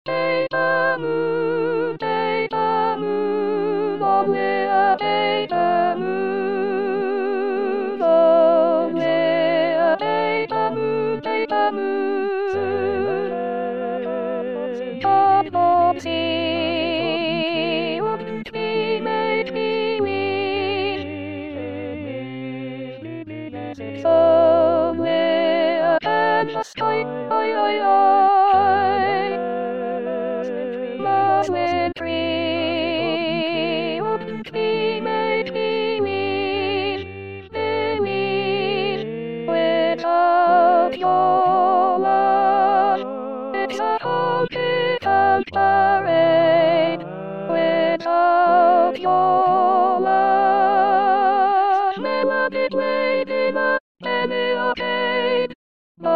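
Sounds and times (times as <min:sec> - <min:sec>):
soprano singing: 0:00.1 - 0:56.1.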